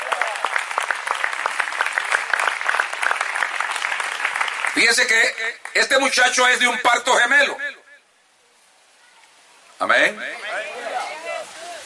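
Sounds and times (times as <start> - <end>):
audience applause: 0.0 - 5.8
speech: 4.8 - 7.7, 9.8 - 10.4.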